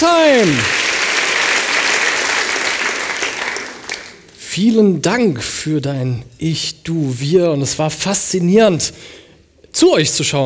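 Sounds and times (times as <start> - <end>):
speech: 0.0 - 0.8, 4.6 - 10.4
audience applause: 0.0 - 4.3.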